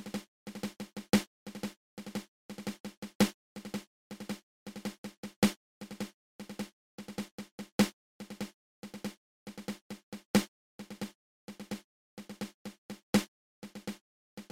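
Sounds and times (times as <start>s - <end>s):
triple ratamacue drum rudiment played open close open: 0.0s - 14.5s.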